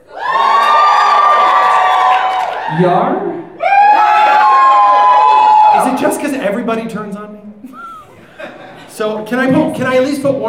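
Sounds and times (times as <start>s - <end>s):
audience cheering: 0.0s - 6.5s
speech: 2.8s - 3.4s, 6.0s - 7.8s, 9.0s - 10.4s
laughter: 7.6s - 9.0s.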